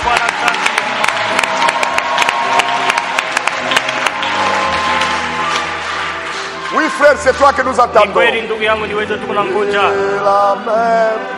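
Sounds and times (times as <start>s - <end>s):
congregation applauding and cheering at a church gathering: 0.0s - 9.0s
speech: 7.1s - 11.3s.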